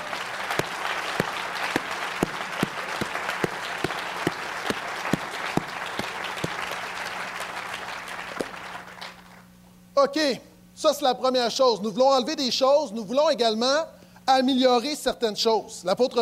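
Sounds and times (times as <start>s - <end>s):
applause: 0.0s - 9.5s
speech: 10.0s - 16.2s.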